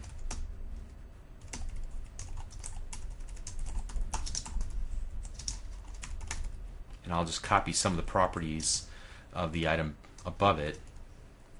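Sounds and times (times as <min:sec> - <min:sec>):
typing on a computer keyboard: 0:00.0 - 0:00.4, 0:01.4 - 0:06.5
speech: 0:07.1 - 0:10.9.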